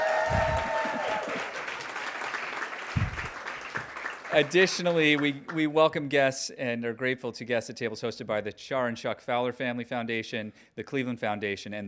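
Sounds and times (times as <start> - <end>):
audience applause at a Cleveland philanthropy community event: 0.0 - 5.5
speech: 4.4 - 11.8.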